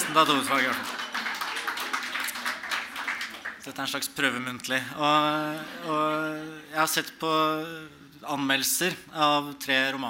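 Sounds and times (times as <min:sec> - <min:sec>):
audience applause: 0:00.0 - 0:03.6
speech: 0:00.1 - 0:01.0, 0:03.6 - 0:10.0.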